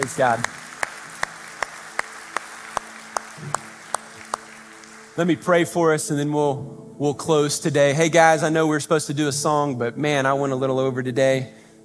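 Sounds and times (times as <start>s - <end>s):
speech: 0.0s - 0.6s, 5.2s - 11.8s
sharp evenly spaced hand claps: 0.0s - 5.2s.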